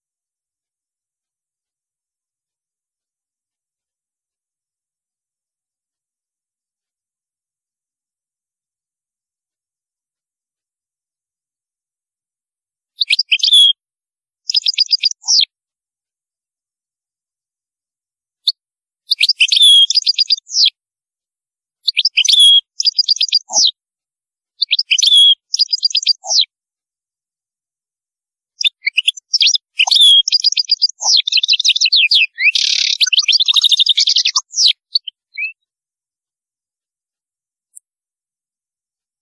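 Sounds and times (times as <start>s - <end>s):
European goldfinch song: 13.0s - 13.8s, 14.5s - 15.5s, 19.1s - 20.7s, 21.9s - 23.8s, 24.6s - 26.5s, 28.6s - 35.6s.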